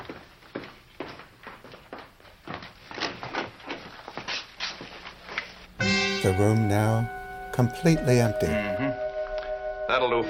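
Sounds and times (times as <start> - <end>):
footsteps of people walking down a hospital ward corridor: 0.0 - 5.9
speech: 6.2 - 9.0, 9.9 - 10.2.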